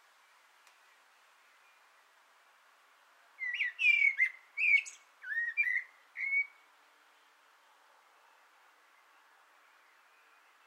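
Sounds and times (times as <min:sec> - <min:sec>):
common blackbird singing: 0:03.4 - 0:06.6.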